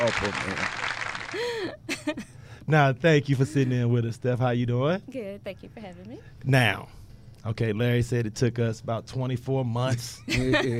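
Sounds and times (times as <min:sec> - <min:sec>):
applause: 0:00.0 - 0:01.6
speech: 0:00.1 - 0:10.7
laughter: 0:10.3 - 0:10.7.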